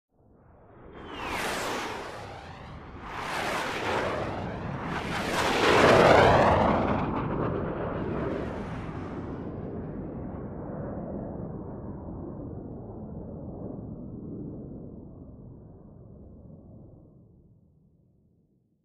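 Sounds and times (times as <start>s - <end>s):
several jet fighters flying past: 0.4s - 12.7s.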